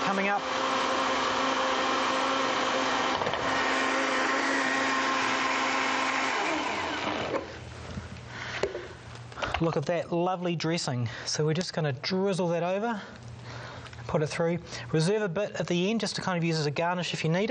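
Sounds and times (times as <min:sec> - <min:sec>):
loud electric blender whirring, blending spices into dressing: 0:00.0 - 0:07.6
speech: 0:00.1 - 0:00.8, 0:09.6 - 0:13.3, 0:14.1 - 0:17.4.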